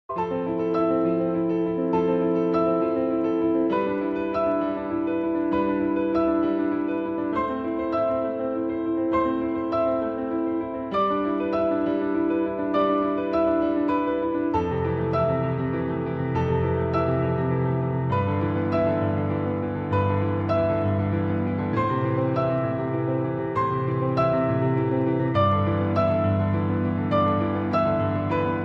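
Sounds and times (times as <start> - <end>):
instrumental piano ringtone: 0.1 - 28.6.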